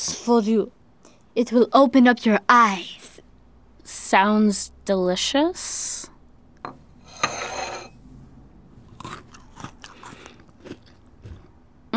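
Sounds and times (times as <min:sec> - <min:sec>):
speech: 0:00.0 - 0:00.8, 0:01.4 - 0:03.0, 0:03.9 - 0:06.8
cookie bitten and chewed: 0:08.9 - 0:11.5.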